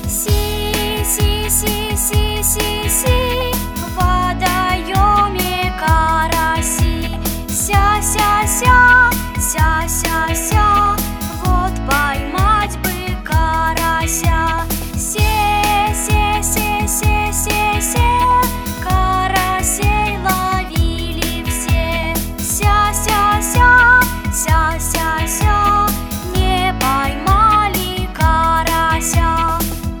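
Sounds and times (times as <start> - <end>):
speech therapy songs: 0.1 - 29.8.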